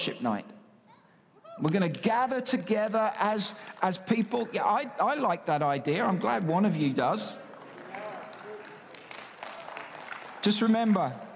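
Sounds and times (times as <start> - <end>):
speech: 0.0 - 0.6, 1.6 - 7.4, 10.4 - 11.2
audience clapping: 1.6 - 5.2, 6.2 - 11.3.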